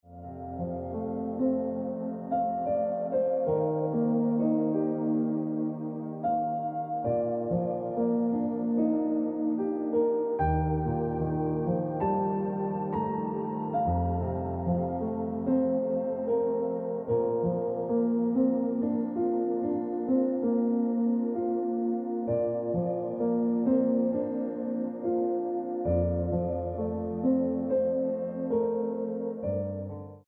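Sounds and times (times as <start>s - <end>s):
piano ringtone music: 0.0s - 30.2s.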